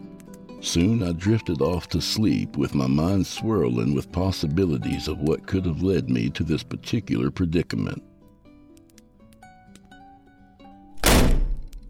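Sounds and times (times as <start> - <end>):
speech: 0.6 - 8.1
door being flung open: 11.0 - 11.8.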